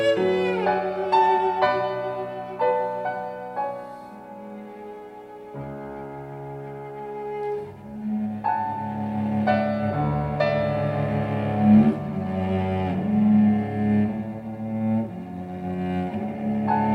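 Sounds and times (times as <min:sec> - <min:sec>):
cello: 0:00.0 - 0:16.9
piano: 0:00.0 - 0:16.9.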